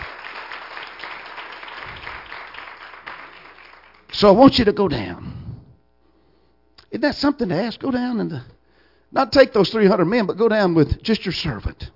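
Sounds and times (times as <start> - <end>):
audience applauding: 0.0 - 4.2
speech: 4.2 - 5.4, 6.9 - 8.5, 9.1 - 11.9.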